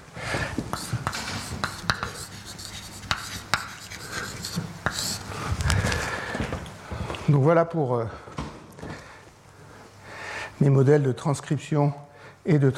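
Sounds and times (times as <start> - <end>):
handwriting during a lecture on the kinetics of messenger RNA and protein: 0.6 - 5.5
speech: 7.3 - 8.3, 10.6 - 12.7.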